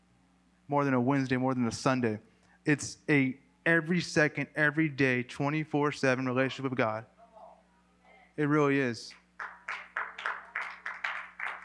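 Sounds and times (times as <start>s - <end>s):
speech: 0.7s - 7.1s, 8.4s - 9.8s
golf clap: 9.1s - 11.6s.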